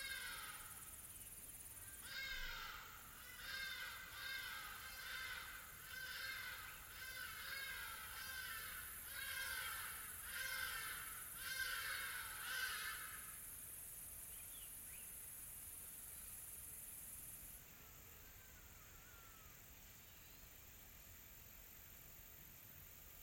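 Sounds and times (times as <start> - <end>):
exotic birds chirping in a tropical forest: 0.0 - 13.1
steady high insect-like hiss: 0.0 - 23.2.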